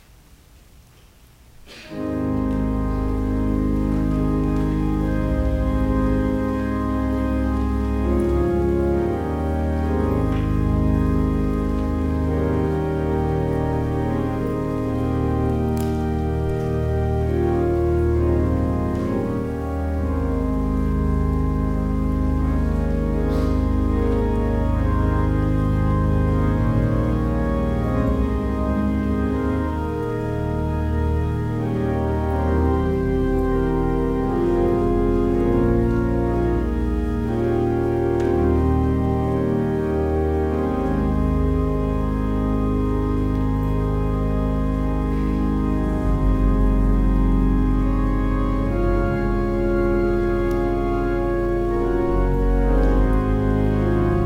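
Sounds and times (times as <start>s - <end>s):
organ music: 1.6s - 54.2s.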